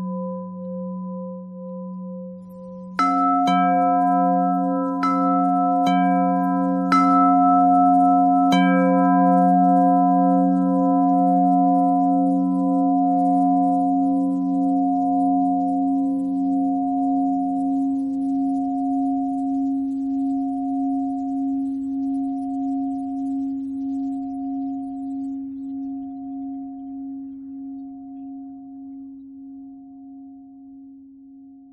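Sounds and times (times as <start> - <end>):
pentatonic bell melody: 0.0 - 23.5.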